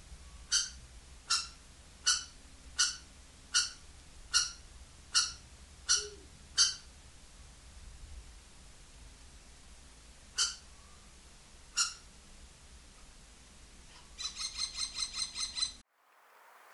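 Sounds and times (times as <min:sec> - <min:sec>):
kestrel calling: 0:00.5 - 0:06.8, 0:14.1 - 0:15.8.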